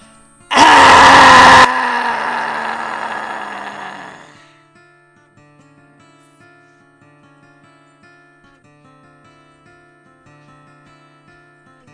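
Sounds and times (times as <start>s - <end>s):
group of voices roaring like lions: 0.5s - 4.4s.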